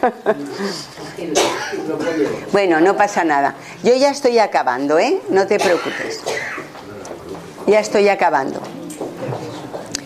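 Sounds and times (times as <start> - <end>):
speech: 0.0 - 6.7, 7.7 - 8.7
person coughing: 1.3 - 2.4, 5.6 - 6.7.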